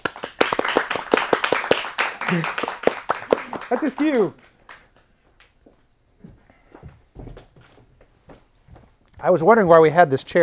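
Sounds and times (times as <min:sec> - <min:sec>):
applause, hands clapping: 0:00.0 - 0:05.6
speech: 0:02.3 - 0:02.7, 0:03.7 - 0:04.4, 0:09.2 - 0:10.4.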